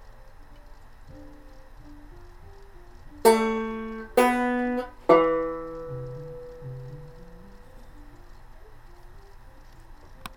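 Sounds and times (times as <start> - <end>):
banjo: 3.2 - 8.0.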